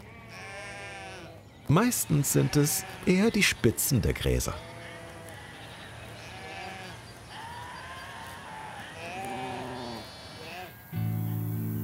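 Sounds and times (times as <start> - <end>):
sheep bleating while grazing: 0.0 - 1.4, 2.0 - 3.5, 4.5 - 11.0
speech: 1.7 - 4.7.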